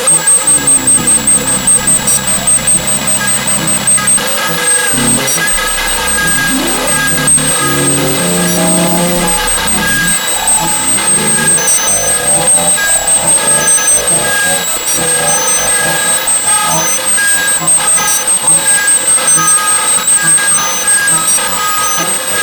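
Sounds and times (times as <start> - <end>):
atonal synth: 0.1 - 22.2.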